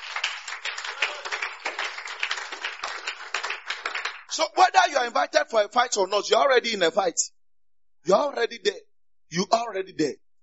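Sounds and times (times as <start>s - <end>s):
audience clapping: 0.0s - 4.8s
speech: 4.4s - 7.4s, 8.0s - 10.2s.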